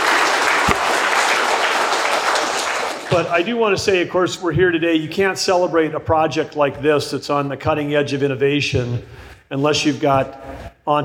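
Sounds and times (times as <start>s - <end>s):
crowd applause: 0.0s - 3.4s
speech: 3.1s - 11.0s.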